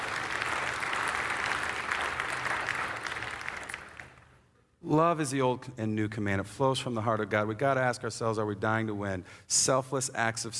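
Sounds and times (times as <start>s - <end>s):
audience applause: 0.0s - 4.3s
speech: 4.9s - 10.5s.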